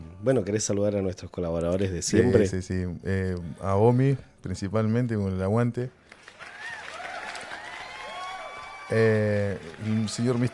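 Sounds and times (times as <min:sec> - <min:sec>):
speech: 0:00.2 - 0:06.0, 0:08.9 - 0:10.5
applause: 0:06.0 - 0:10.5.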